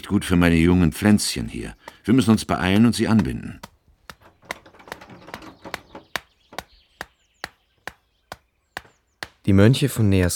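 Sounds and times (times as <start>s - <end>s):
speech: 0.0s - 3.7s, 9.5s - 10.3s
faint bird chirps: 1.1s - 10.1s
stone hammering wooden stakes: 1.4s - 9.6s.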